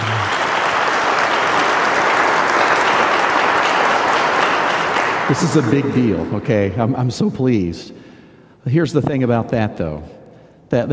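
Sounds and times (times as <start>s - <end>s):
audience applause: 0.0s - 6.2s
speech: 5.3s - 10.9s.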